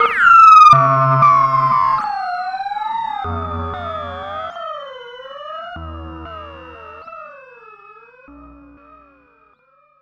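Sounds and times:
radiophonic electronic sounds: 0:00.0 - 0:04.8, 0:05.7 - 0:07.4, 0:08.3 - 0:09.2.

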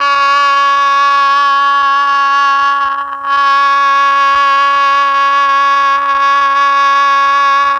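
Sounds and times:
MEL oboe sound: 0:00.0 - 0:07.7.

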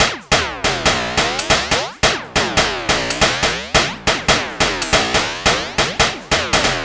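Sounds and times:
140 BPM house drum loop: 0:00.0 - 0:06.8.

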